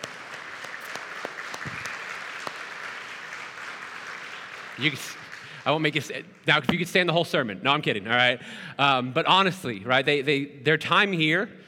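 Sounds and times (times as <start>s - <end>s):
audience round of applause: 0.0s - 6.1s
speech: 4.8s - 11.6s.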